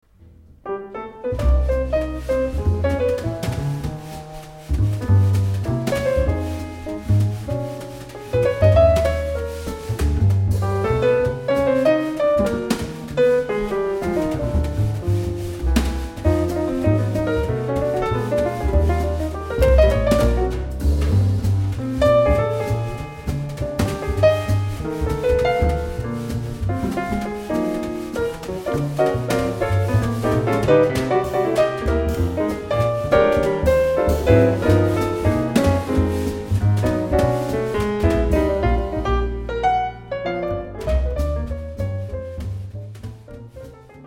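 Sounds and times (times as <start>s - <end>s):
jazz music: 0.1s - 44.0s.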